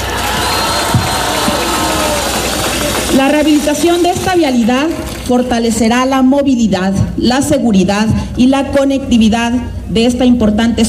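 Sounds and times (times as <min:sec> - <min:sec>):
audience applause: 0:00.0 - 0:05.2
speech: 0:03.3 - 0:10.8.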